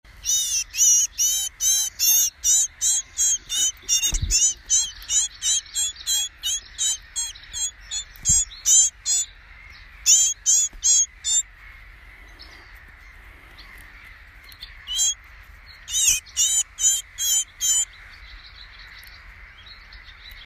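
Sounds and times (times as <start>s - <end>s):
Eurasian blue tit giving harsh buzzy scolding notes: 0.1s - 19.5s.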